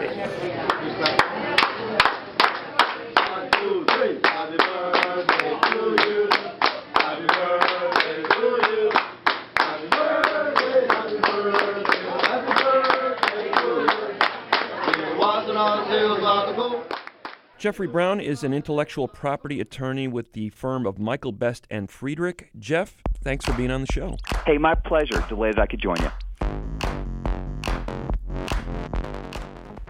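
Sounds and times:
group of voices chanting a birthday song: 0.0 - 17.1
speech: 0.2 - 1.3, 17.6 - 26.2
restaurant staff rhythmic clapping: 0.7 - 15.1, 16.9 - 17.4, 23.1 - 29.8.

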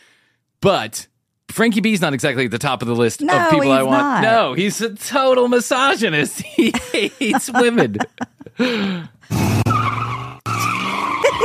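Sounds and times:
speech: 0.6 - 9.6
laughter: 3.3 - 4.5, 5.8 - 9.2, 11.1 - 11.4
car tires skidding and squealing: 9.3 - 11.4.

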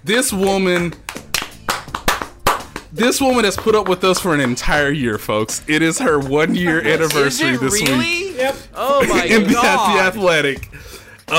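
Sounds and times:
speech: 0.0 - 1.1, 2.9 - 11.3
people clapping to honour a producer: 0.4 - 5.0, 6.2 - 8.6
laughter: 5.7 - 8.4, 9.0 - 10.0.

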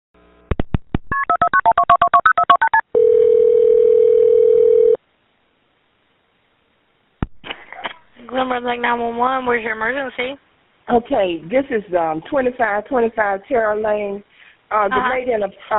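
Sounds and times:
phone keypad tones dialing a number: 1.1 - 5.0
speech: 8.6 - 15.7.

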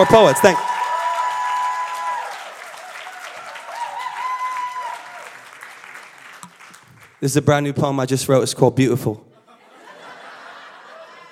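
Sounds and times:
speech: 0.0 - 0.6, 7.2 - 9.3
high whoops and cheers: 0.0 - 5.6
audience clapping: 0.0 - 7.3
laughter: 9.4 - 11.3.

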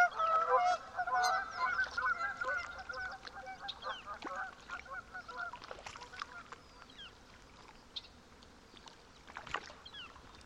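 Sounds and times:
geese honking at a lake in Washington's Methow Valley: 0.0 - 5.6
small splashes: 1.6 - 10.4.

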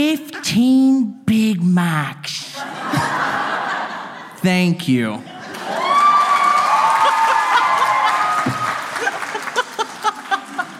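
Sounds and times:
speech: 0.0 - 2.8, 4.4 - 5.3
laughter: 2.5 - 6.1, 6.8 - 10.7
crowd cheering and applauding: 5.4 - 10.7
high sustained whoop: 5.7 - 8.9.

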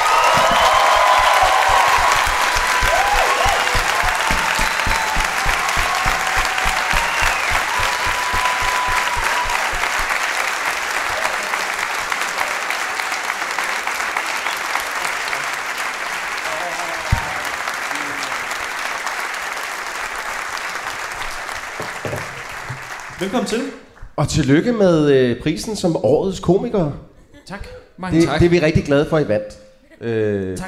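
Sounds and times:
studio audience cheering and whoops: 0.0 - 13.1
studio audience applause welcoming two comedian guests: 0.0 - 24.0
speech: 23.2 - 30.6.

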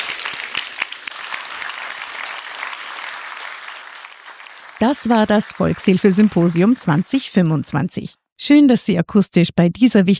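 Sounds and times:
audience applause: 0.0 - 7.2
speech: 4.8 - 10.1.

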